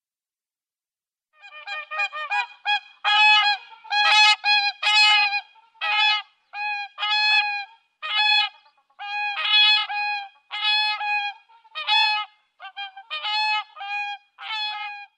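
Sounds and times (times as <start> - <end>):
whooper swans calling in bugling chorus: 1.5 - 15.1.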